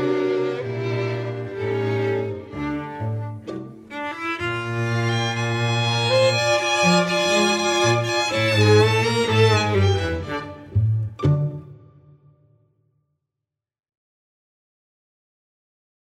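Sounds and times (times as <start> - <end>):
instrumental music: 0.0 - 12.5.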